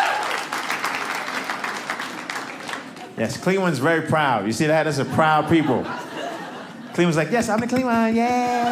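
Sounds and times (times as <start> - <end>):
audience clapping: 0.0 - 3.7
speech: 3.2 - 6.0, 7.0 - 8.7
laughter: 4.6 - 8.7.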